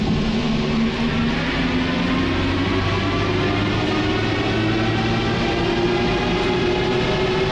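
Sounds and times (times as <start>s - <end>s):
metro train accelerating: 0.0s - 7.5s.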